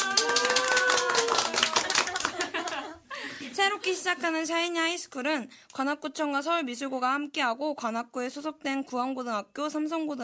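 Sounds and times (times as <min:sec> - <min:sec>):
clapping: 0:00.0 - 0:02.9
laughter: 0:01.1 - 0:04.0
speech: 0:03.7 - 0:10.2.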